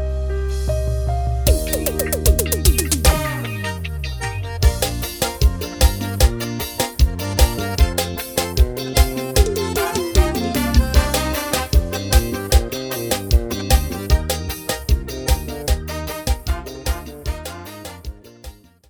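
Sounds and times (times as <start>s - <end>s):
piseiro music: 0.0s - 18.8s.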